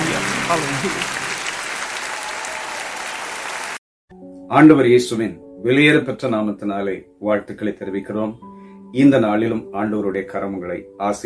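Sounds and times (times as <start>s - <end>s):
church congregation clapping hands during worship: 0.0s - 3.8s
speech: 0.5s - 1.2s, 4.5s - 11.2s.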